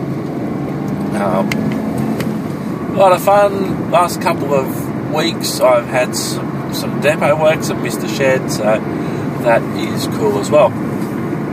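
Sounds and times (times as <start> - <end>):
police motorcycle engine passing by: 0.7 - 2.7
speech: 1.2 - 1.8, 3.0 - 11.0.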